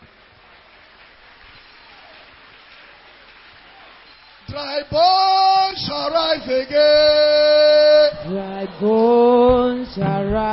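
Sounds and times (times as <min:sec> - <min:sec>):
audience clapping hands: 0:00.0 - 0:10.5
speech: 0:04.5 - 0:10.5.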